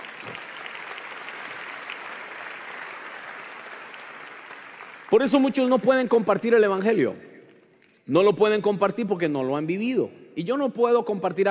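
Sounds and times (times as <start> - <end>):
audience applause: 0.0 - 5.6
speech: 5.1 - 7.3, 8.1 - 11.4.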